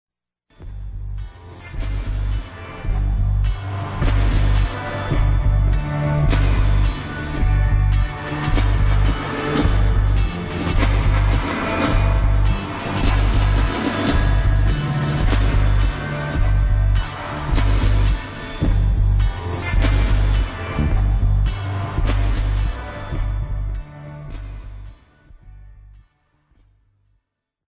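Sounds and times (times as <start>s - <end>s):
reggae music: 0.7s - 25.6s.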